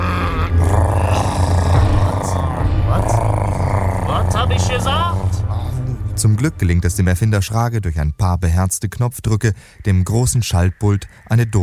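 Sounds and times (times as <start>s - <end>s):
loud stomachs growling: 0.0s - 5.8s
speech: 6.2s - 11.6s.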